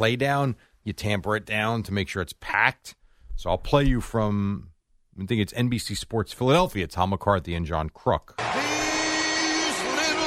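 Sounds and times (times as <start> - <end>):
speech: 0.0 - 8.8
stadium crowd cheering: 8.4 - 10.2.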